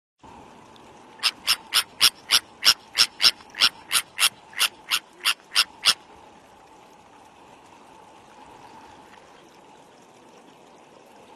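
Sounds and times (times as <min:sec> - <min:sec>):
Sabine's gull uttering rasping calls: 0:01.2 - 0:06.0.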